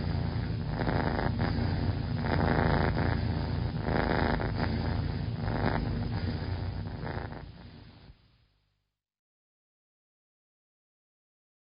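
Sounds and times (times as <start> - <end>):
cat purring in a custom built sound booth: 0.0 - 8.2.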